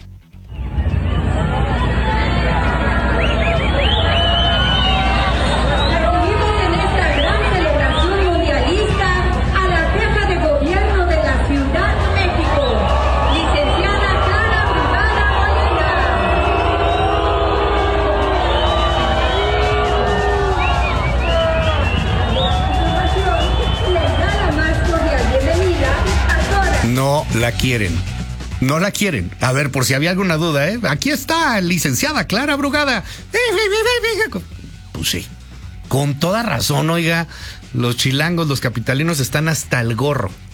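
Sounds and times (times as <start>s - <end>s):
crowd booing Clara Brugada during the World Cup parade on Paseo de la Reforma: 0.5s - 27.1s
scattered shouts: 0.6s - 26.9s
speech: 27.6s - 40.4s.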